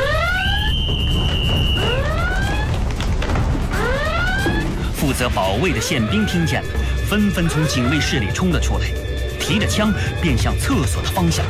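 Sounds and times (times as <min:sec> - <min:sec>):
loud alarm wailing: 0:00.0 - 0:02.9, 0:03.7 - 0:08.4, 0:09.4 - 0:10.4
steady low rumble: 0:00.4 - 0:11.2
speech: 0:05.2 - 0:11.4.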